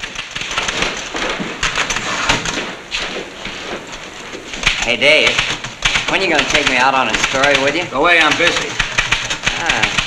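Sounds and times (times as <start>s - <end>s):
typewriter keys being pounded: 0.0s - 2.6s, 4.6s - 10.0s
speech: 4.9s - 5.5s, 6.1s - 8.8s, 9.6s - 10.0s.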